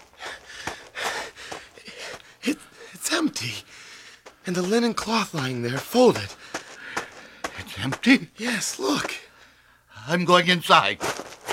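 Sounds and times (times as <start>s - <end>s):
man panting out of breath after running to a garden tomb: 0.0s - 3.0s, 3.6s - 4.4s, 6.3s - 7.6s
speech: 2.4s - 3.7s, 4.4s - 6.4s, 7.8s - 9.2s, 10.0s - 11.2s.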